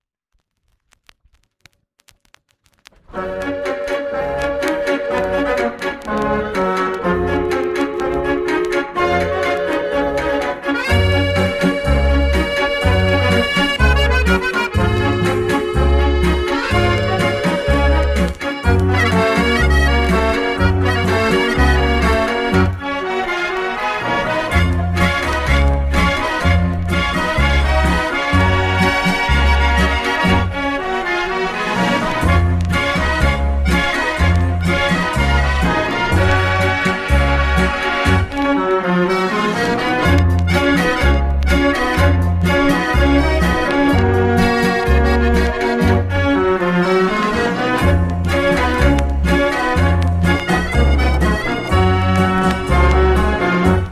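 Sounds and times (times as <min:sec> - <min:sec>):
mortier organ: 0:03.3 - 0:53.8.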